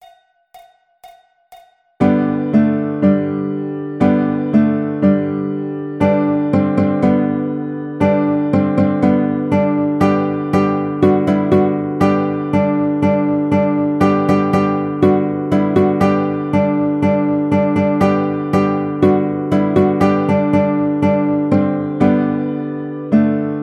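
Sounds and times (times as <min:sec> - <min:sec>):
baritone ukulele playing nursery rhyme in G: 0:02.0 - 0:23.5.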